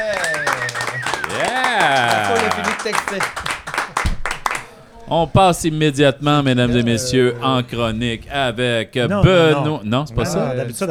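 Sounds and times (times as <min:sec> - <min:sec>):
voices whooping and cheering: 0:00.0 - 0:03.0
crowd clapping: 0:00.0 - 0:05.3
laughter: 0:00.0 - 0:10.8
speech: 0:01.8 - 0:03.5, 0:05.1 - 0:10.8.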